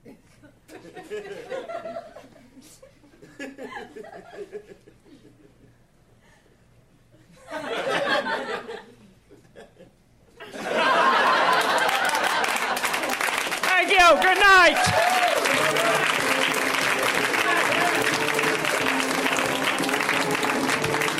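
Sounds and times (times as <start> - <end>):
cheers and laughter: 10.5 - 13.1, 14.0 - 19.1
audience applause after comedy set: 10.7 - 21.1
person calling out: 13.7 - 15.0.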